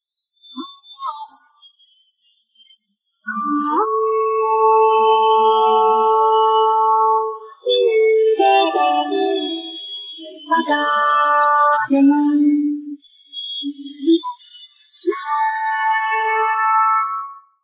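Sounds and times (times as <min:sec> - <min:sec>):
person singing: 0:03.3 - 0:13.0, 0:15.1 - 0:17.4.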